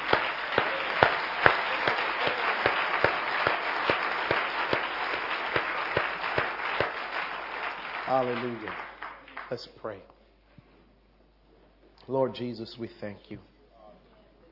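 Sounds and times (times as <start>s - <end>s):
audience hand clapping: 0.0s - 9.7s
speech: 8.1s - 8.9s, 9.5s - 10.2s, 12.1s - 13.5s.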